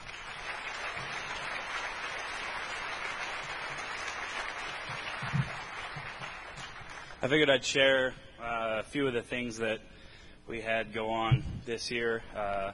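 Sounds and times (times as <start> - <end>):
round of applause: 0.0 - 7.2
speech: 7.2 - 8.2, 8.9 - 12.7.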